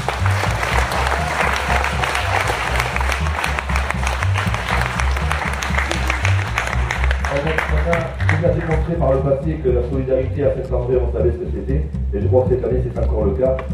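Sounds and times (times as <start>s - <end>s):
audience applause and ovation: 0.0s - 8.9s
speech: 9.1s - 13.7s.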